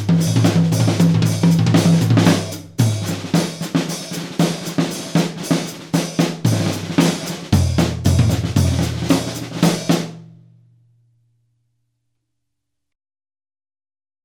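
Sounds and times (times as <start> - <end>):
snare drum: 0.0 - 10.3.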